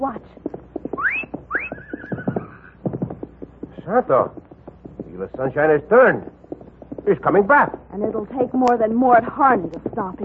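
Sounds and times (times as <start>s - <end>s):
low thuds and rumble: 0.0s - 10.2s
horse neighing: 1.0s - 2.8s
speech: 3.9s - 4.5s, 5.2s - 6.4s, 7.0s - 10.2s.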